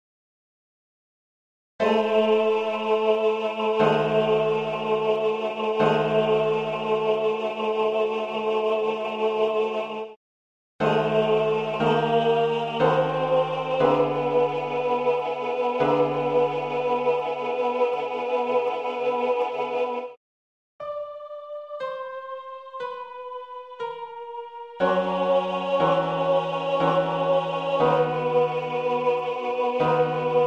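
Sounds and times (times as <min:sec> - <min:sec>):
choir singing: 0:01.8 - 0:10.2, 0:10.8 - 0:20.2, 0:20.8 - 0:30.4
tenor singing: 0:01.8 - 0:10.2, 0:10.8 - 0:20.1, 0:24.7 - 0:30.4.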